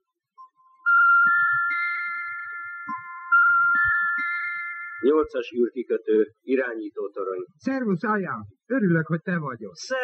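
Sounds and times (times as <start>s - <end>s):
electronic phone ringing as a call is placed to a spaceport control tower: 0.4s - 5.3s
speech: 5.0s - 10.0s.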